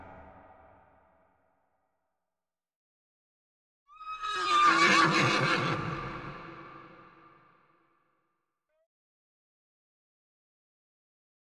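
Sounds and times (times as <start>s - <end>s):
horse whinnying: 4.1s - 5.8s.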